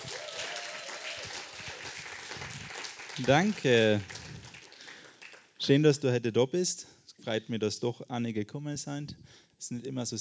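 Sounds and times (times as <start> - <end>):
welcoming applause: 0.0 - 5.6
speech: 3.2 - 4.2, 5.6 - 10.1.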